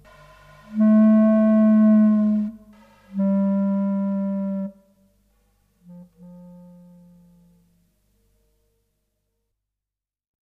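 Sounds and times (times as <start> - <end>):
clarinet: 0.0 - 5.1, 5.8 - 8.0.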